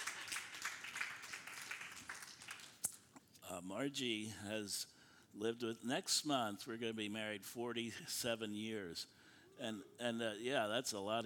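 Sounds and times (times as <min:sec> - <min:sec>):
audience clapping: 0:00.0 - 0:02.9
speech: 0:03.5 - 0:11.2.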